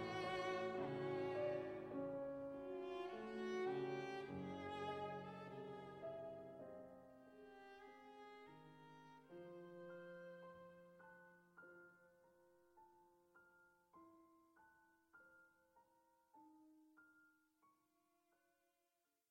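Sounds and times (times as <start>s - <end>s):
cello love song: 0.0s - 11.8s.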